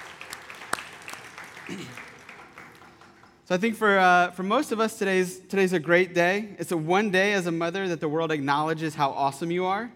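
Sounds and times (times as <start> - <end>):
audience clapping: 0.0 - 3.8
speech: 1.7 - 2.1, 3.5 - 9.9.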